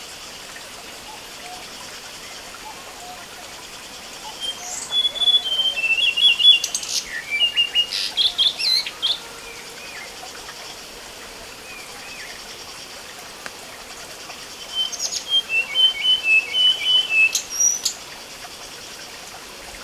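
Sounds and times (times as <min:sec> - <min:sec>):
Chinese blue flycatcher singing in Sichuan: 0:04.2 - 0:10.4, 0:14.6 - 0:18.0.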